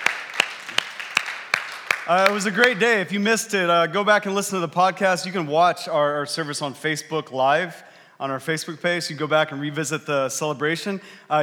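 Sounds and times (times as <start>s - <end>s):
audience clapping: 0.0s - 3.0s
speech: 2.1s - 11.4s.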